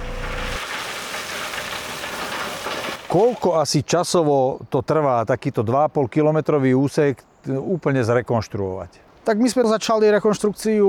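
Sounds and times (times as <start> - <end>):
vibratory road roller engine vibrating: 0.0 - 3.4
speech: 3.1 - 10.8.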